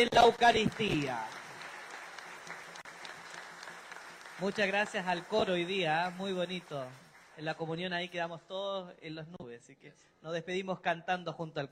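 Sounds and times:
speech: 0.0 - 1.4, 4.4 - 11.7
crowd audience applauding: 0.0 - 7.7.

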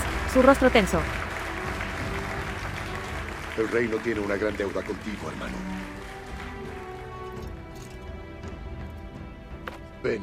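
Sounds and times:
applause: 0.0 - 7.6
speech: 0.4 - 1.2, 3.6 - 6.0, 10.0 - 10.2.

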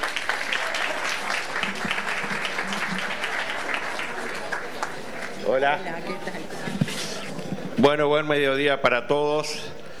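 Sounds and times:
audience applause: 0.0 - 5.7
speech: 5.6 - 7.2, 7.8 - 9.8.

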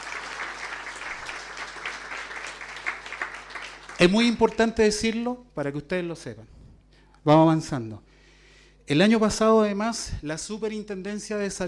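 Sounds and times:
audience applause: 0.0 - 4.7
speech: 4.0 - 6.6, 7.2 - 8.1, 8.9 - 11.6.

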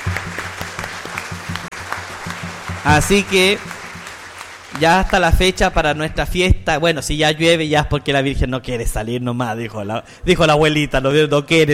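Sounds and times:
applause at a parish gathering: 0.0 - 6.0
speech: 2.8 - 3.7, 4.8 - 11.7.

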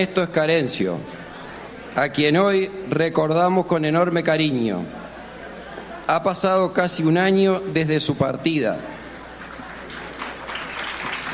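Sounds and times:
speech: 0.0 - 1.2, 2.0 - 5.0, 6.1 - 8.9
applause: 9.3 - 11.3.

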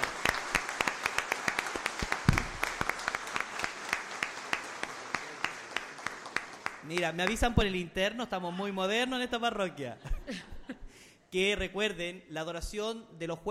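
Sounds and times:
audience applause: 0.0 - 7.5
speech: 6.9 - 10.5, 11.3 - 13.4
laughter: 9.8 - 10.9.

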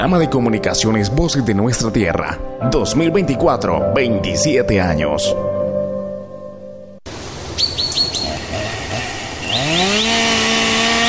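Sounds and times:
speech: 0.0 - 5.5
birds chirping: 7.3 - 11.0
chainsaw cutting trees: 8.2 - 11.0.

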